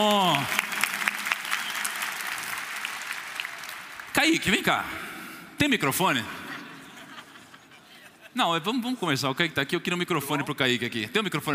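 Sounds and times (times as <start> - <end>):
audience applause: 0.0 - 4.7
speech: 4.3 - 6.4, 8.4 - 11.5
laughter: 6.1 - 8.4.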